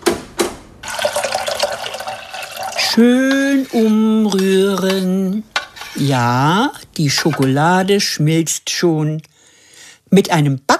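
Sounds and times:
water pouring and bubbling into a pot: 0.8s - 5.0s
speech: 2.9s - 9.3s, 10.1s - 10.7s.

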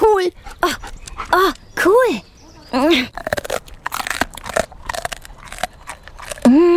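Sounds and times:
speech: 0.2s - 2.2s
small patient crunching on a bravery treat: 2.9s - 6.7s.

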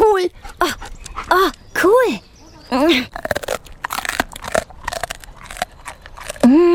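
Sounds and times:
speech: 0.2s - 3.4s
small reward treat being bitten and chewed: 3.1s - 6.7s.

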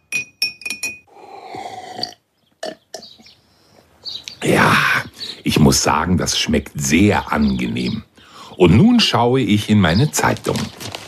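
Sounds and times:
spoon clinking in glass of honey tea: 0.0s - 1.1s
speech: 5.5s - 10.8s.

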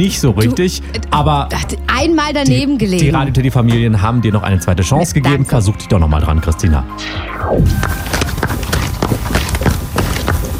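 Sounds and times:
speech: 0.0s - 8.3s
hooves of a horse or pony at a relaxed walk: 7.6s - 10.5s.

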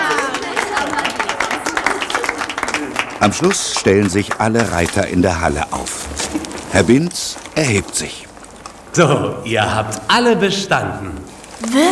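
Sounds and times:
small audience applauding a rider at a riding school hall: 0.0s - 7.8s
speech: 3.2s - 8.2s, 9.0s - 11.9s.

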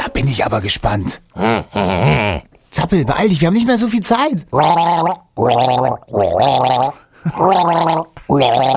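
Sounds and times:
speech: 0.2s - 8.7s
person gargling a tune with water: 1.4s - 2.5s, 4.6s - 8.7s.

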